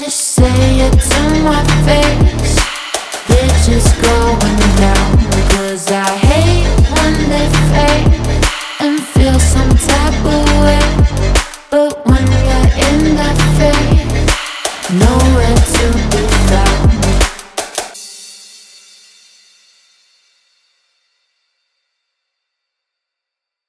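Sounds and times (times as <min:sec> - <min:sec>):
vocals: 0:00.0 - 0:18.2.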